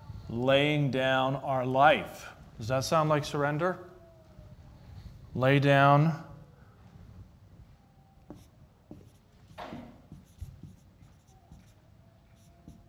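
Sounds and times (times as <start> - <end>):
speech: 0.3 - 3.9, 5.3 - 6.3
pen writing on paper: 8.3 - 12.8.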